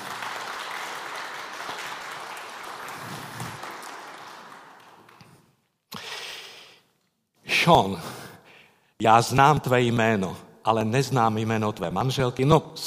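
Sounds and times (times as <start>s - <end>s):
audience applause greeting an arriving procession: 0.0s - 5.5s
speech: 7.7s - 8.2s, 9.0s - 12.8s.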